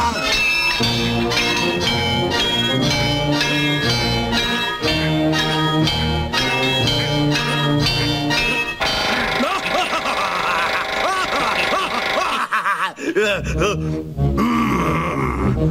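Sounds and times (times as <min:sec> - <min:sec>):
boxing bell clanging in an arena: 0:00.2 - 0:10.2
laughter: 0:09.4 - 0:15.6.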